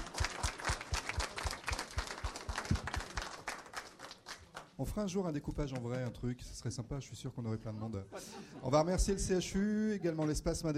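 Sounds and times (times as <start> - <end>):
audience applause: 0.0 - 4.8
speech: 4.8 - 10.7.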